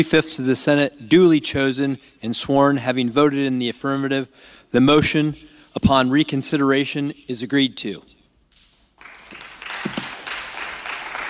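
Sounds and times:
speech: 0.0s - 8.1s
applause in the Senate: 9.0s - 11.2s.

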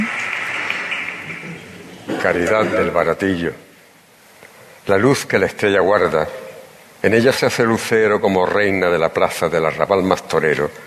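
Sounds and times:
ovation applause from a large crowd: 0.0s - 2.9s
speech: 2.2s - 3.6s, 4.9s - 6.4s, 7.0s - 10.8s.

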